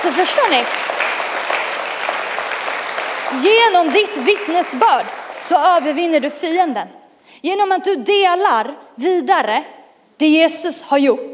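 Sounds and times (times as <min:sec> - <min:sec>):
audience applause: 0:00.0 - 0:06.0
speech: 0:00.1 - 0:01.0, 0:03.3 - 0:11.3.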